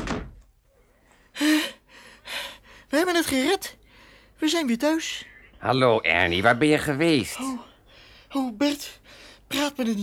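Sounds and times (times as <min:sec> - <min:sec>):
door opening and shutting: 0:00.0 - 0:00.5
speech: 0:02.9 - 0:03.8, 0:04.4 - 0:07.7, 0:08.3 - 0:10.0.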